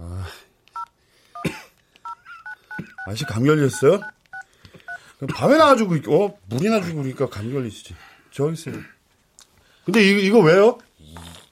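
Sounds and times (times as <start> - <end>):
dual-tone phone keypad beeps entering a number: 2.0 - 5.0
speech: 3.1 - 4.2, 5.2 - 9.0, 9.8 - 11.2.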